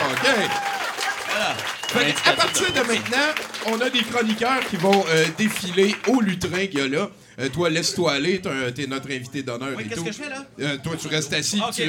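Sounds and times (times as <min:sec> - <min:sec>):
audience applause: 0:00.0 - 0:06.9
speech: 0:00.2 - 0:00.7, 0:01.3 - 0:11.8.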